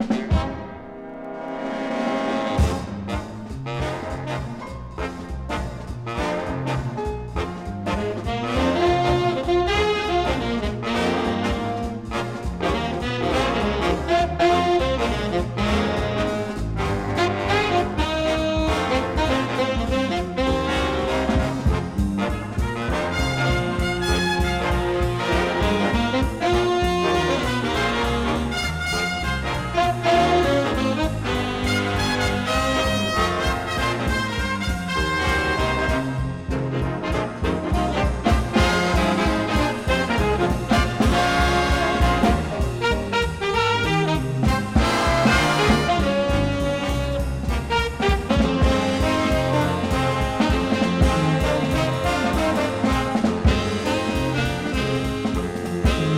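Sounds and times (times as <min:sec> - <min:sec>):
jazz band playing: 0:00.0 - 0:56.1.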